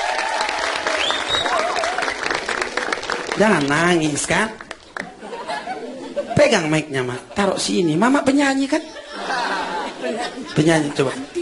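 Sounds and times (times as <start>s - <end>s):
audience applause: 0.0s - 5.2s
high whistles: 1.0s - 1.6s
speech: 3.4s - 4.6s, 6.4s - 9.5s, 10.1s - 11.3s
laughter: 5.0s - 6.6s, 8.8s - 11.4s.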